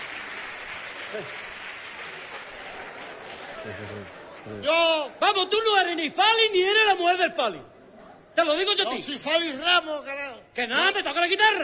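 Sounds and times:
audience applause: 0.0 - 4.7
speech: 1.1 - 1.5, 3.6 - 7.7, 8.4 - 11.6.

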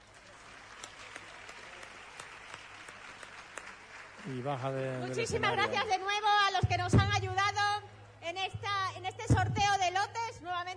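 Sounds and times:
audience applause: 0.0 - 6.4
speech: 4.2 - 7.7, 8.3 - 10.7.

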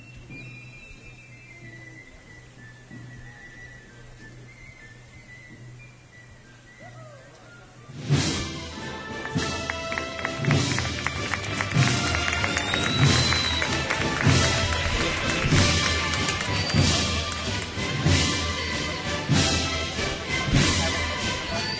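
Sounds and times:
faint musical tones: 0.0 - 21.7
crowd applause in a plaza: 8.5 - 21.7.

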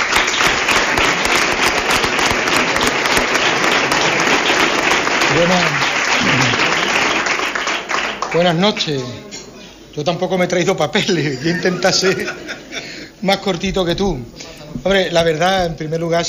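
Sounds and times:
audience applause: 0.0 - 9.2
laughter: 2.4 - 7.4, 11.0 - 13.2
speech: 8.3 - 9.4, 10.0 - 12.6, 13.2 - 16.2.

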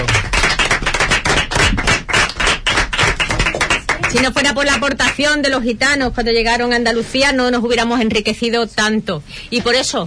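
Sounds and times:
audience applause: 0.0 - 4.8
speech: 4.1 - 10.0.

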